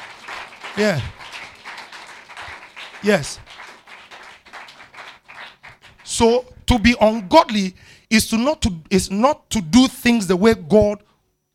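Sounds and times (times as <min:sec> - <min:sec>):
audience clapping in a steady rhythm: 0:00.0 - 0:06.9
speech: 0:00.8 - 0:01.2, 0:03.0 - 0:03.5, 0:06.2 - 0:11.1.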